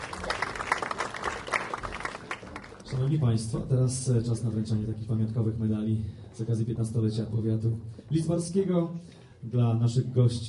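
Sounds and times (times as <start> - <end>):
applause from guests at a county's 15th anniversary ceremony in Poland: 0.0 - 3.1
speech: 2.9 - 10.4.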